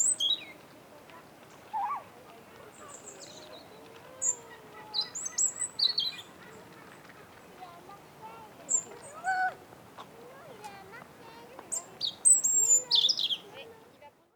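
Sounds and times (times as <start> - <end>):
European robin singing: 0.0 - 0.6, 2.7 - 6.4, 8.7 - 9.4, 11.7 - 13.7.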